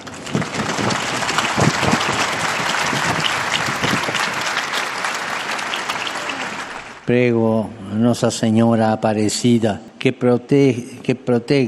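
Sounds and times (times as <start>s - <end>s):
audience applause: 0.0s - 7.1s
speech: 7.1s - 11.6s.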